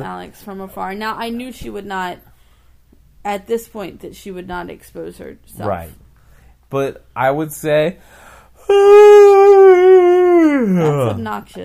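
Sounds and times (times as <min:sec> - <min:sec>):
speech: 0:00.0 - 0:02.3, 0:03.2 - 0:06.0, 0:06.7 - 0:11.6
loud yawn: 0:08.6 - 0:11.2.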